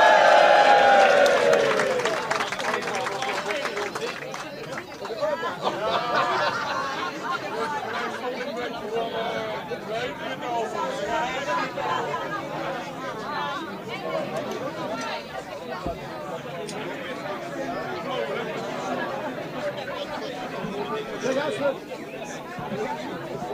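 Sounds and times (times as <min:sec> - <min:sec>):
audience clapping: 0:00.0 - 0:05.3
crowd cheering: 0:00.0 - 0:07.7
crowd chatter: 0:00.0 - 0:23.5
laughter: 0:05.1 - 0:08.6.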